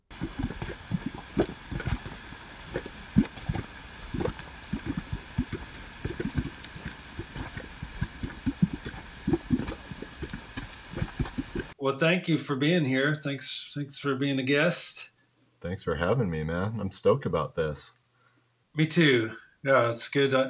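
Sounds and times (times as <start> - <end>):
soft hiss: 0.0 - 20.4
bubbling mud pots in Yellowstone: 0.1 - 11.8
speech: 11.9 - 18.0, 18.8 - 20.4.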